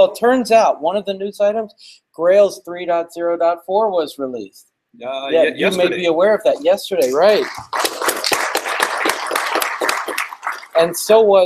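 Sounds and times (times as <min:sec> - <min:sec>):
speech: 0:00.0 - 0:07.9, 0:10.8 - 0:11.4
crowd applauding: 0:07.0 - 0:11.1.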